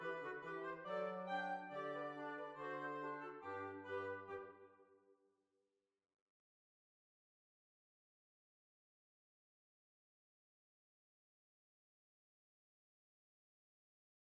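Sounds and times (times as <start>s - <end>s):
hornpipe tune: 0.0s - 4.6s.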